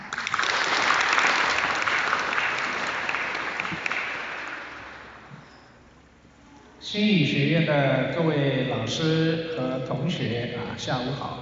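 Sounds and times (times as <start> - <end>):
audience applause: 0.0 - 5.2
speech: 6.9 - 11.4.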